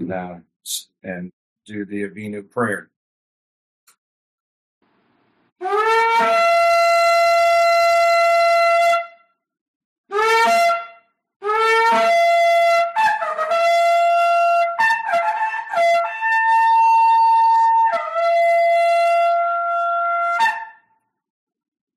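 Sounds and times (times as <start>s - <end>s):
speech: 0.0s - 3.0s, 5.6s - 6.6s
shofar being blown: 5.6s - 9.2s, 10.1s - 20.8s.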